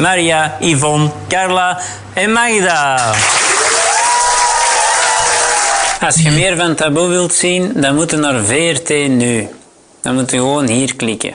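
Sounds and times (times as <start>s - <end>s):
speech: 0.0s - 3.4s, 6.0s - 11.3s
audience applause: 3.0s - 6.1s.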